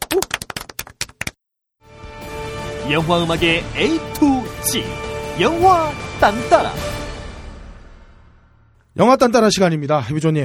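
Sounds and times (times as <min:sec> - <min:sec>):
hand clapping: 0:00.0 - 0:01.4
sustained music: 0:01.9 - 0:08.8
speech: 0:02.9 - 0:07.0, 0:09.0 - 0:10.4.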